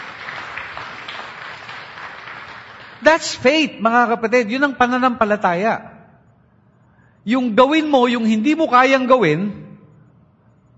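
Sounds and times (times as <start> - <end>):
congregation applauding: 0.0 - 3.4
speech: 3.0 - 5.9, 7.2 - 9.6.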